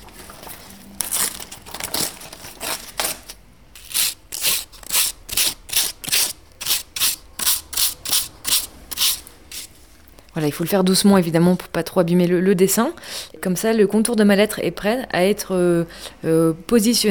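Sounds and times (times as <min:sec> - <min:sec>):
sandpaper rubbing on the back of paper: 0:03.8 - 0:09.7
speech: 0:10.4 - 0:17.0.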